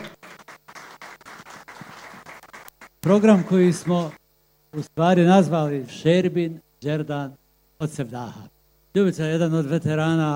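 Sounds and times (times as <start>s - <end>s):
audience applause greeting two singers on a live music show: 0.0s - 4.2s
speech: 3.0s - 10.3s.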